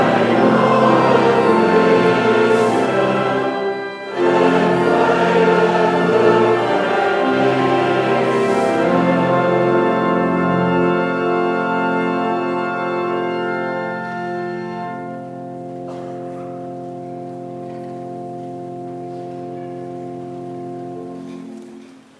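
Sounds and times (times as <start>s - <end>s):
congregation singing: 0.0s - 14.1s.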